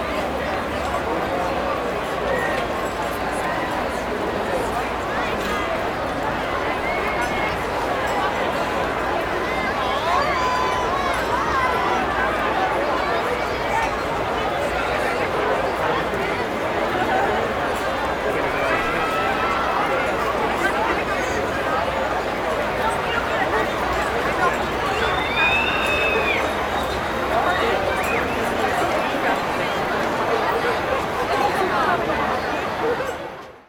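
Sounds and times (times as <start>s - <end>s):
crowd walla at a busy amusement park fair: 0.0s - 33.6s.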